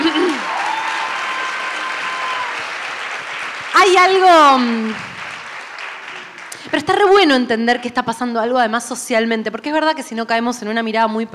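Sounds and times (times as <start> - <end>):
audience applause: 0.0 - 7.1
speech: 3.8 - 5.1, 6.7 - 11.3.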